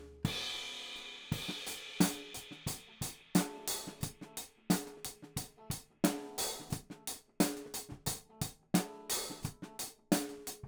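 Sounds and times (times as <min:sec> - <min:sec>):
hi-hat: 0:00.3 - 0:10.4.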